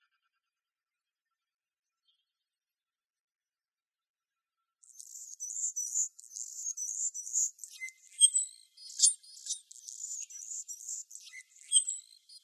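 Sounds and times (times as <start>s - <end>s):
Anna's hummingbird buzzy song in Arizona: 4.9s - 12.4s.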